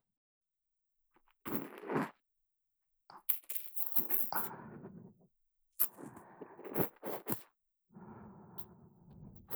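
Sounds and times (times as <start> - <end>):
ear cleaning ASMR sounds in the right ear: 1.5 - 2.1, 3.3 - 5.1, 5.8 - 9.5.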